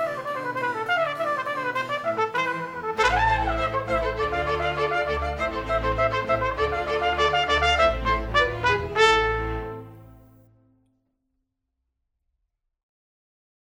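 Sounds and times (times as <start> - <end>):
recorder concerto: 0.0 - 10.2.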